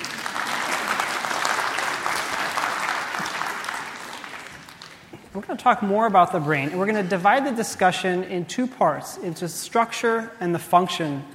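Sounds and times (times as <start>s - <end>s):
audience applause: 0.0s - 5.2s
speech: 5.4s - 11.3s.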